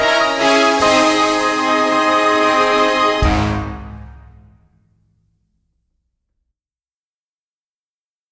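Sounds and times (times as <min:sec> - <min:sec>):
audition accompaniment music: 0:00.0 - 0:04.9.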